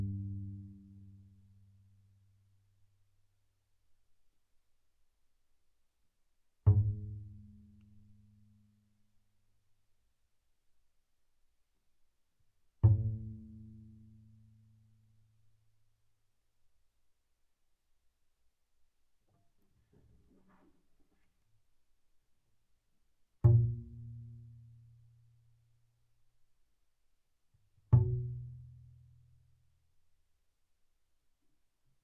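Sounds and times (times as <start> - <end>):
double bass pizzicato fortissimo on the A string: 0.0 - 1.3, 6.7 - 8.5, 12.8 - 14.4, 23.4 - 25.2, 27.8 - 29.4.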